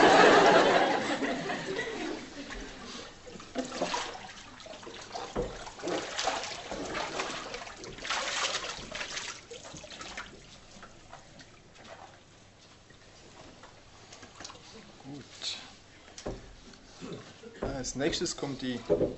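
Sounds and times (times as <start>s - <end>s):
laughter: 0.0s - 3.0s
water pouring and splashing over a person during a baptism: 2.4s - 17.0s
speech: 17.8s - 19.1s.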